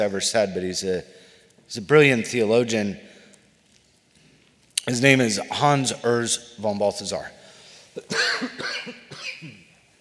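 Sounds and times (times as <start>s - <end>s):
speech: 0.0s - 3.1s, 4.8s - 7.4s
person clearing their throat with raspy coughs: 8.0s - 9.7s.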